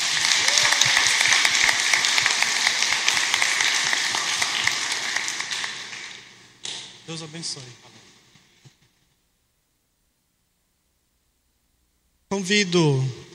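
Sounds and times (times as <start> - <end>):
audience applause: 0.0 - 6.6
speech: 7.1 - 7.9, 12.4 - 13.2.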